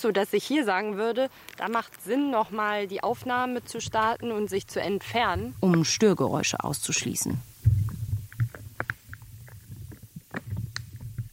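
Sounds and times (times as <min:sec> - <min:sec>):
speech: 0:00.0 - 0:07.5
underground soil life popping and crunching: 0:00.6 - 0:11.3
low steady rumble: 0:02.9 - 0:11.3.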